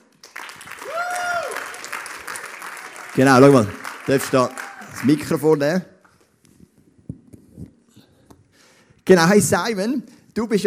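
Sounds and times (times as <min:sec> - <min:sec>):
audience applause: 0:00.0 - 0:05.6
speech: 0:03.2 - 0:05.9, 0:09.1 - 0:10.6.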